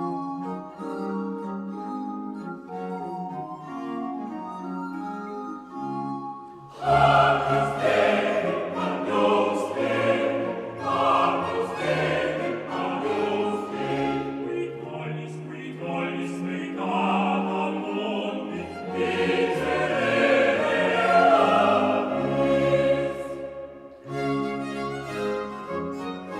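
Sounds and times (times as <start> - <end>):
flute: 0.0 - 15.0, 16.5 - 26.3
violin: 0.0 - 26.3
four voices singing: 6.7 - 24.0.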